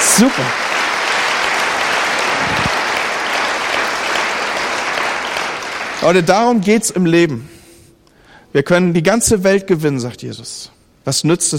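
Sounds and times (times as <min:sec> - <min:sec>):
audience applause: 0:00.0 - 0:06.3
speech: 0:00.2 - 0:00.6, 0:06.0 - 0:07.5, 0:08.5 - 0:11.5.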